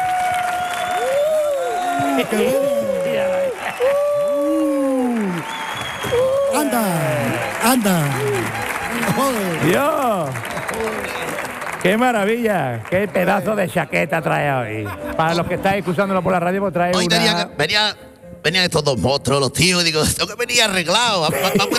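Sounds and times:
audience applause: 0.0 - 14.1
laughter: 1.8 - 5.3, 14.6 - 15.6, 21.1 - 21.7
speech: 2.2 - 2.7, 3.8 - 4.6, 6.1 - 21.7.

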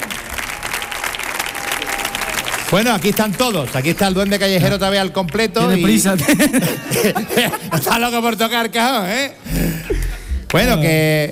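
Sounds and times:
audience applause: 0.0 - 6.6
speech: 2.7 - 9.6, 10.5 - 11.2
laughter: 5.6 - 8.4, 9.5 - 10.8.

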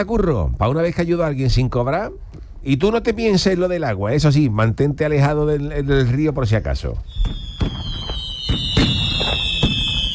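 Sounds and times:
speech: 0.0 - 8.2
fireworks over the city at midnight: 7.1 - 10.1.

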